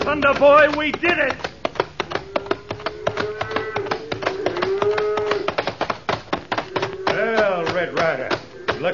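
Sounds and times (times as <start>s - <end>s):
speech: 0.2s - 1.5s
cattle lowing: 1.6s - 5.6s, 6.4s - 8.9s.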